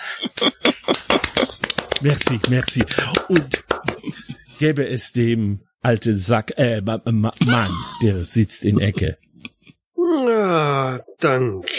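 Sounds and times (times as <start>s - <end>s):
laughter: 0.0s - 5.1s, 7.3s - 9.7s
speech: 0.2s - 1.1s, 2.0s - 3.7s, 4.6s - 9.2s, 10.5s - 11.7s
hand clapping: 0.3s - 4.4s.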